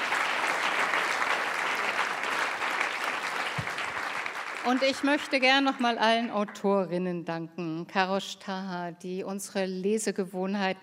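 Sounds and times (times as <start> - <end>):
audience applause: 0.0 - 6.3
speech: 4.6 - 10.8.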